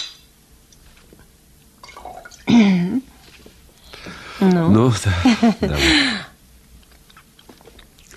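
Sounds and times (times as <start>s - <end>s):
cognac being poured into a glass: 1.8s - 2.5s
speech: 4.4s - 6.2s.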